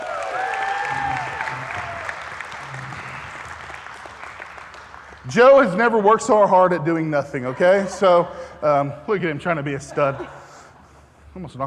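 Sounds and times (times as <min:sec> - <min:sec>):
people cheering: 0:00.0 - 0:04.2
audience clapping: 0:00.0 - 0:06.1
speech: 0:05.3 - 0:10.4, 0:11.4 - 0:11.6.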